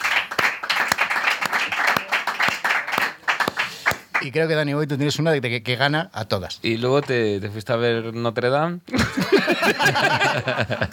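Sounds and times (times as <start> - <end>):
audience applauding: 0.0 - 4.3
speech: 4.2 - 10.9
laughter: 8.9 - 10.9.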